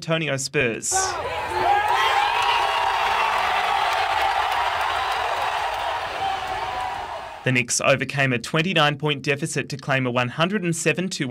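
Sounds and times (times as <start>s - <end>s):
speech: 0.0s - 2.1s, 7.4s - 11.2s
crowd cheering in Manhattan: 0.9s - 7.5s.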